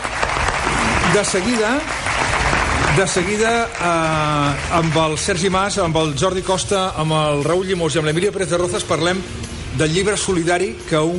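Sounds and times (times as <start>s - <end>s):
studio audience clapping on radio show Món a RAC1: 0.0s - 5.8s
speech: 1.1s - 2.0s, 2.9s - 11.1s.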